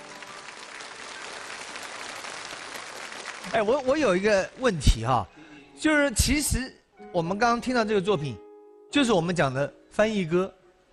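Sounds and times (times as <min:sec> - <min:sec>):
audience applause: 0:00.0 - 0:04.6
speech: 0:03.4 - 0:10.6.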